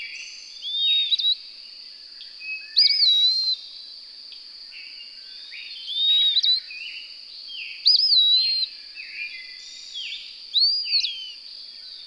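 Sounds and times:
bird song of clear whistled phrases with warbled start and gliding tail: 0:00.0 - 0:01.4, 0:02.4 - 0:03.6, 0:05.8 - 0:06.8, 0:07.6 - 0:08.7, 0:09.3 - 0:11.4.

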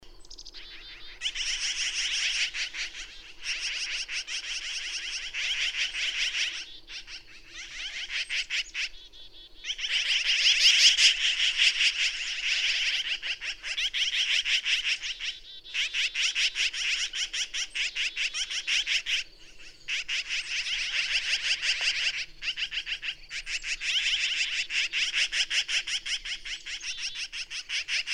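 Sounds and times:
bird song: 0:00.0 - 0:28.1.

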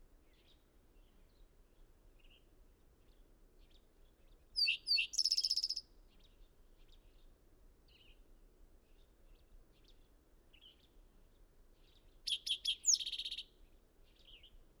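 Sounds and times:
bird singing: 0:04.6 - 0:05.8, 0:11.8 - 0:13.5.

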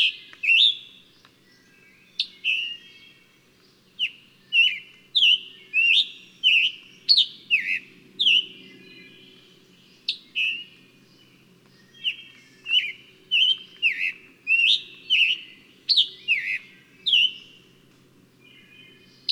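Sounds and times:
bird singing whistled phrases: 0:00.0 - 0:03.2, 0:04.0 - 0:09.2, 0:10.1 - 0:10.7, 0:11.8 - 0:17.5.

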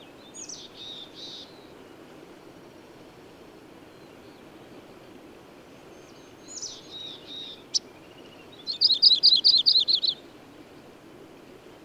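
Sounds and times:
bird singing a rapid trill of high slurred notes: 0:00.2 - 0:01.6, 0:06.0 - 0:10.2.

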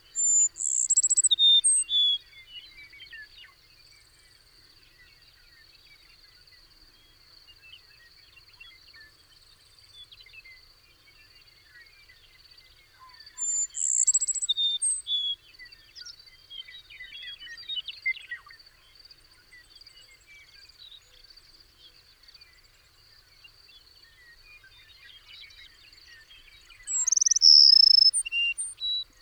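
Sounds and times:
bird singing a brief bright phrase: 0:00.0 - 0:03.6, 0:12.1 - 0:18.9, 0:19.5 - 0:29.2.

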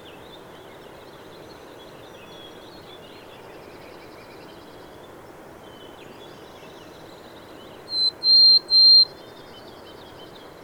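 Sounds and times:
faint background hiss: 0:00.0 - 0:10.6
bird song of whistled notes: 0:07.9 - 0:09.1.

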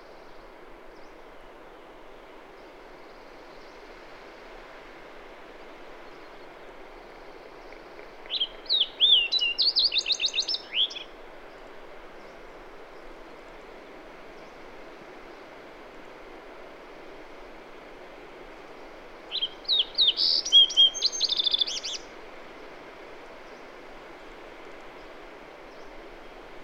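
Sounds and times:
bird song with whistled slurs and trilled phrases: 0:06.0 - 0:11.1, 0:19.3 - 0:22.1.

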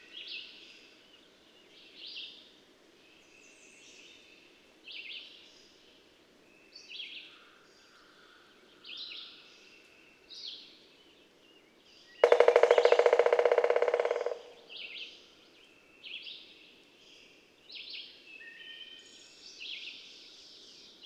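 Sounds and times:
birds singing with high thin whistles and chirpy warbles: 0:11.2 - 0:16.2.

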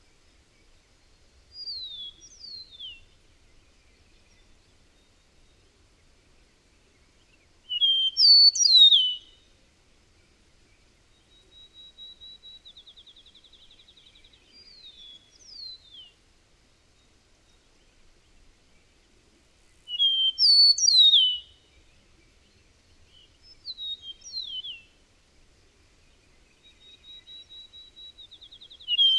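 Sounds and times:
bird whistling song: 0:01.5 - 0:03.2, 0:07.6 - 0:09.5, 0:11.1 - 0:16.2, 0:19.9 - 0:21.8, 0:23.1 - 0:25.0, 0:26.5 - 0:29.1.

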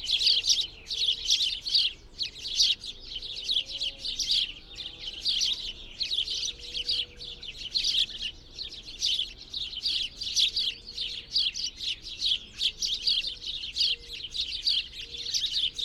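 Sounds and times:
birds twittering: 0:00.0 - 0:15.8.

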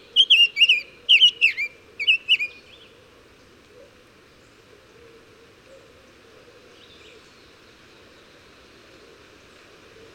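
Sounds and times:
bird song: 0:00.0 - 0:03.0, 0:06.8 - 0:08.5.

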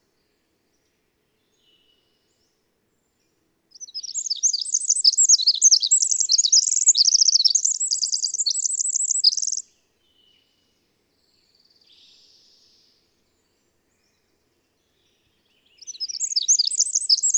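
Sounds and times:
twittering bird song with short trills: 0:03.8 - 0:09.7, 0:15.6 - 0:17.3.

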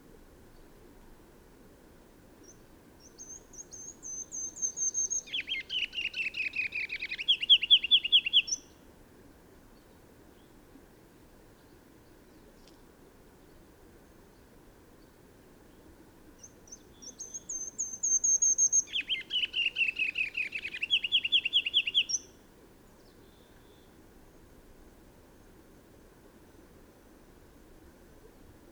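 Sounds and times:
bird singing bright down-slurred chirped notes: 0:02.4 - 0:08.7, 0:16.4 - 0:22.4.

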